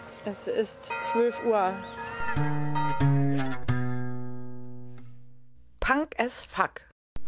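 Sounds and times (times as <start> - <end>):
speech: 0.2 - 3.2, 6.3 - 6.9
distant bell ringing: 0.2 - 3.6.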